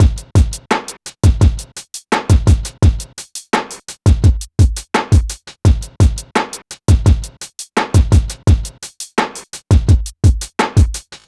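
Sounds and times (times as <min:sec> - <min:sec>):
hip hop drum beat: 0:00.0 - 0:11.2.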